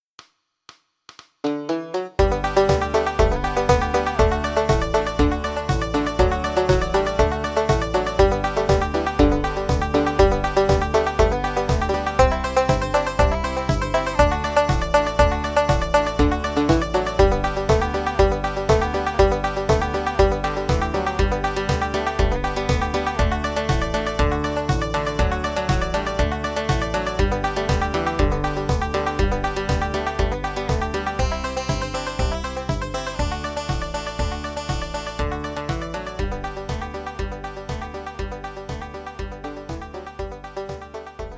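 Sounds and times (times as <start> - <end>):
bluegrass banjo in G: 1.5 - 41.3.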